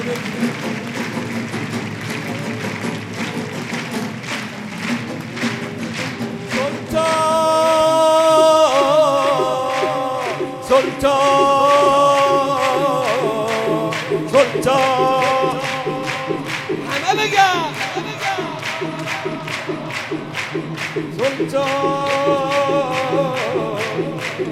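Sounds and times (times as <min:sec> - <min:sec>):
crowd clapping along at a religious gathering honouring Imam Reza: 0:00.0 - 0:24.5
sung melody: 0:06.6 - 0:24.5.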